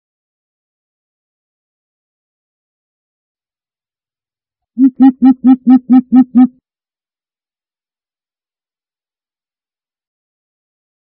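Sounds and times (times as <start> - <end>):
greater coucal giving low hoots: 4.8 - 6.5.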